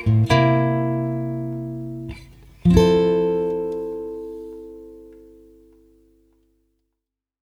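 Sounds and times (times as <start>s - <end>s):
two-five chord progression on Gm7: 0.2s - 5.8s.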